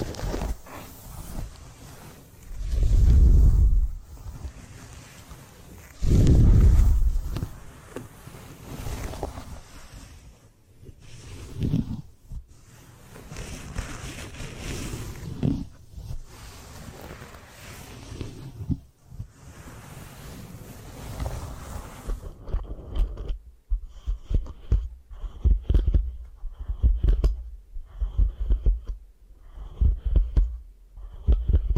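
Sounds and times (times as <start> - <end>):
heavy low rubbing during hair washing and massage: 0.0 - 18.6, 19.3 - 22.3
softer scratchy brushing strokes: 0.0 - 31.7.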